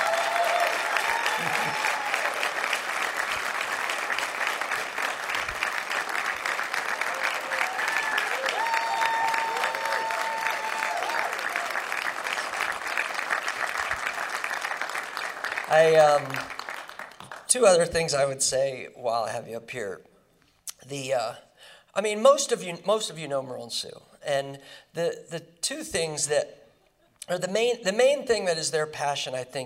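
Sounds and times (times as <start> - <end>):
audience applause: 0.0 - 17.4
speech: 15.8 - 16.5, 17.5 - 20.1, 20.9 - 26.6, 27.3 - 29.6.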